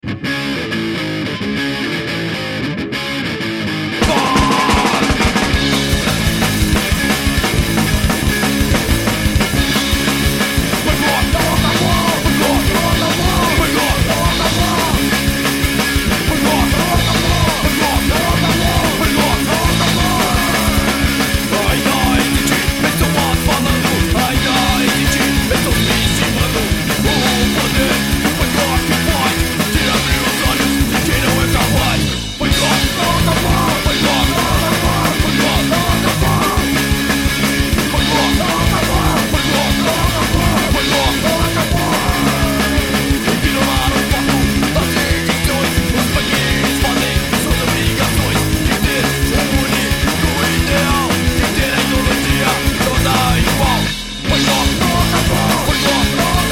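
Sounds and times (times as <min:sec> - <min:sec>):
punk rock music: 0:00.0 - 0:56.5.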